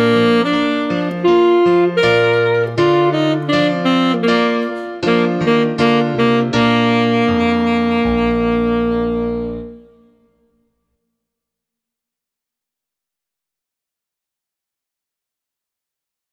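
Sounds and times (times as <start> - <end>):
baritone saxophone playing a minuet slowed down: 0.0 - 10.6.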